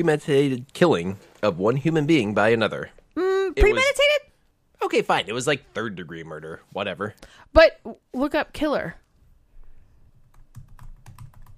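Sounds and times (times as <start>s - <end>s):
speech: 0.0s - 9.0s
typing on a computer keyboard: 10.3s - 11.5s.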